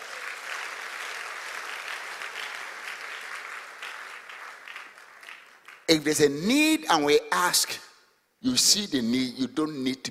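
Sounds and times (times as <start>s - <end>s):
audience clapping: 0.0s - 6.3s
speech: 5.9s - 10.1s.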